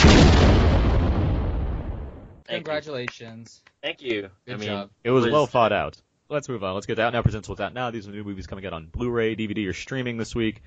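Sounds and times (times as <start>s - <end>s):
explosion sound effect with heavy low-end rumble: 0.0s - 2.4s
speech: 2.6s - 10.6s.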